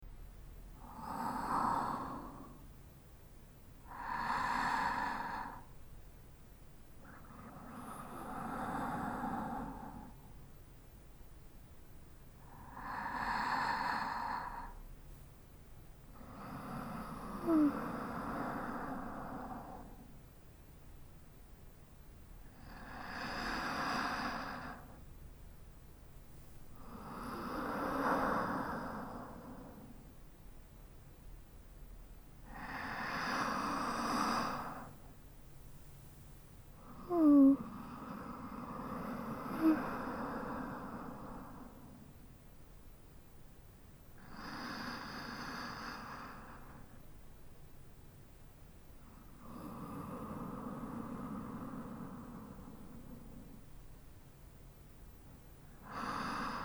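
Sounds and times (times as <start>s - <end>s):
sleep breathing on the left side: 0.8s - 2.7s, 3.8s - 5.8s, 7.0s - 10.4s, 12.4s - 14.8s, 16.1s - 20.1s, 22.6s - 25.0s, 26.8s - 30.2s, 32.4s - 35.2s, 36.8s - 42.2s, 44.2s - 47.2s, 49.1s - 53.7s, 55.7s - 56.6s.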